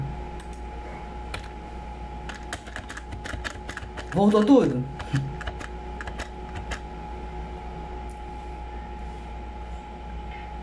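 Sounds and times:
steady low hum: 0.0s - 10.6s
computer mouse clicks during an online lesson: 2.3s - 6.8s
speech: 4.2s - 5.3s.

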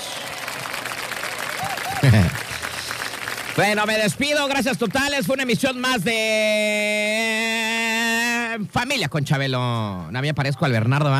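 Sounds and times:
rapid applause: 0.0s - 5.6s
laughter: 1.6s - 3.0s
speech: 2.0s - 2.4s, 3.6s - 7.7s, 8.5s - 11.1s.

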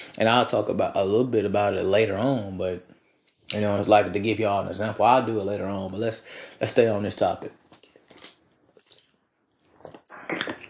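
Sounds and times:
speech: 0.2s - 7.6s
person drinking water: 8.1s - 9.1s.

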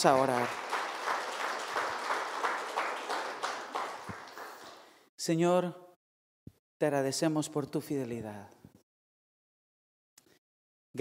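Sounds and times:
speech: 0.0s - 0.6s, 5.2s - 5.8s, 6.8s - 8.6s
audience applauding: 0.0s - 5.0s.

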